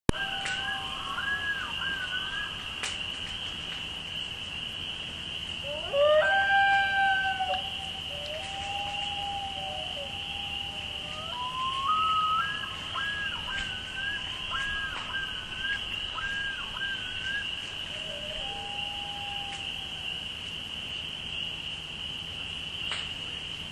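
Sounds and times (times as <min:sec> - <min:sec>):
spring peepers chorus: 0:00.1 - 0:23.7.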